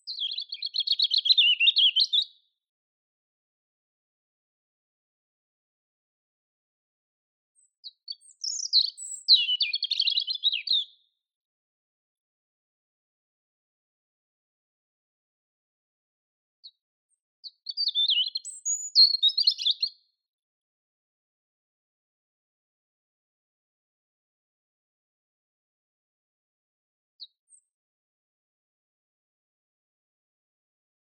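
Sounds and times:
European robin singing: 0.0s - 2.4s, 7.6s - 11.0s, 17.4s - 20.0s.

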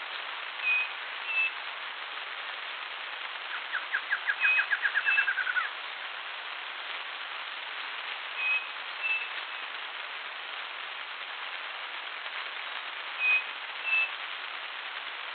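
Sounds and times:
steady hiss: 0.0s - 15.3s
bird whistles: 0.6s - 1.6s, 3.7s - 5.7s, 8.4s - 9.3s, 13.2s - 14.1s.

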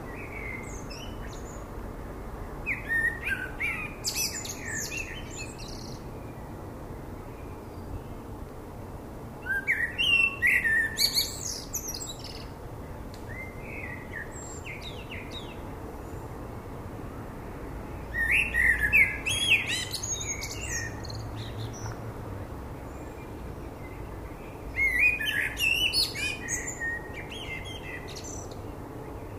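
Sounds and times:
background hiss: 0.0s - 29.3s
common blackbird singing: 0.1s - 1.6s, 2.7s - 6.0s, 9.4s - 12.5s, 13.3s - 15.6s, 18.0s - 22.0s, 22.9s - 29.3s.

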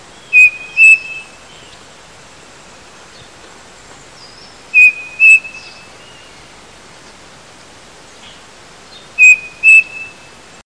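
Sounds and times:
short sharp whistled bird calls: 0.2s - 1.8s, 4.3s - 6.3s, 8.9s - 10.4s.

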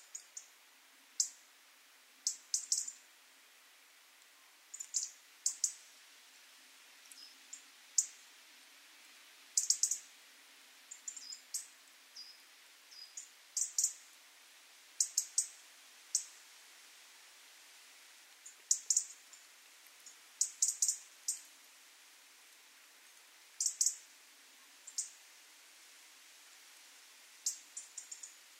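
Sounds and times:
European robin ticking calls: 0.0s - 0.6s, 1.2s - 1.5s, 2.2s - 3.1s, 4.7s - 5.9s, 7.0s - 8.2s, 9.6s - 10.1s, 10.9s - 14.1s, 15.0s - 16.4s, 18.4s - 21.5s, 23.6s - 24.1s, 24.8s - 25.2s, 27.4s - 28.4s
faint hiss: 0.0s - 28.5s.

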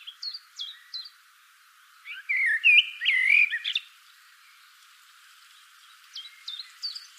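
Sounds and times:
common blackbird chattering calls: 2.1s - 3.8s.

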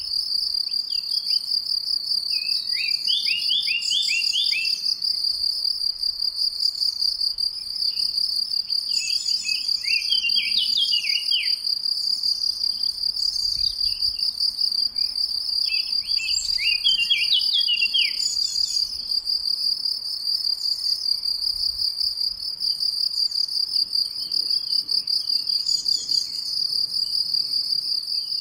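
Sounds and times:
loud continuous cricket chirping: 0.0s - 28.3s
Eurasian blackcap tumbling warbled song: 2.3s - 4.8s, 8.9s - 11.6s, 15.7s - 18.9s.

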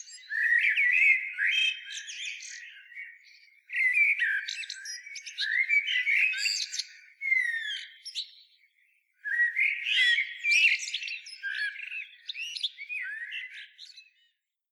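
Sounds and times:
Common blackbird singing: 0.0s - 14.3s.

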